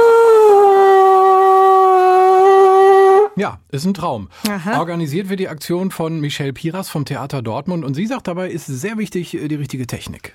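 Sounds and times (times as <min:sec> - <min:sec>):
garden hose trumpet being blown: 0:00.0 - 0:03.4
speech: 0:03.4 - 0:10.3.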